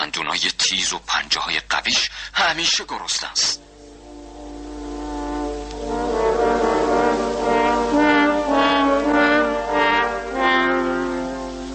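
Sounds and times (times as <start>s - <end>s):
speech: 0.4s - 3.7s
three French horns playing a dark brass theme: 3.6s - 11.7s.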